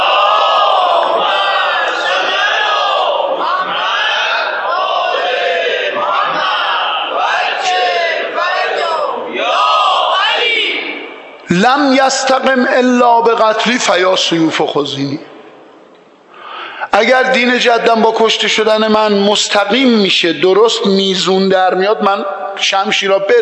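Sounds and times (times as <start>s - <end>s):
large crowd chanting salawat: 0.0s - 11.0s
speech: 11.7s - 15.3s, 17.0s - 23.3s.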